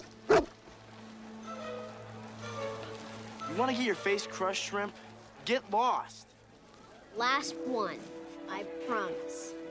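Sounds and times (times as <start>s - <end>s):
dog barking on command: 0.3s - 0.5s
speech: 3.6s - 6.3s, 7.1s - 9.6s.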